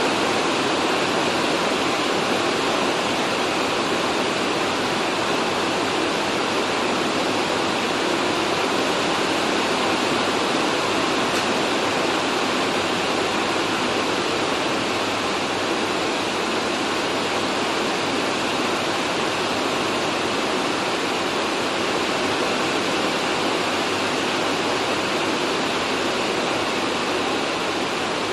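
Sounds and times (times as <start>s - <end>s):
rain on an office roof heard from inside: 0.0s - 28.3s.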